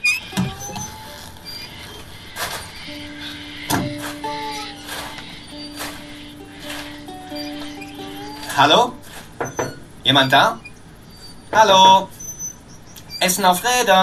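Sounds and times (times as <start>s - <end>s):
windmill squeaking: 0.0s - 14.0s
speech: 8.6s - 9.0s, 10.1s - 10.6s, 11.5s - 12.1s, 13.2s - 14.0s.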